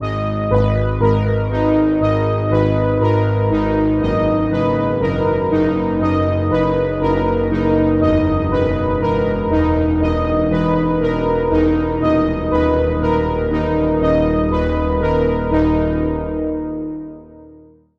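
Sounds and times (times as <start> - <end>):
synth lead from Spire synthesizer: 0.0 - 17.8.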